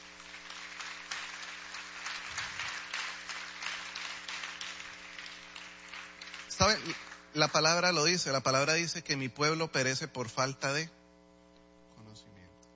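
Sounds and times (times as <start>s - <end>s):
audience applause: 0.0s - 7.8s
low electrical hum: 0.0s - 12.7s
speech: 6.6s - 11.0s.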